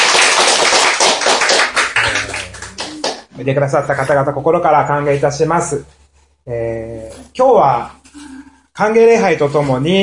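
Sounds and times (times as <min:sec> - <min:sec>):
audience applause welcoming visitors: 0:00.0 - 0:03.2
speech: 0:03.4 - 0:10.0.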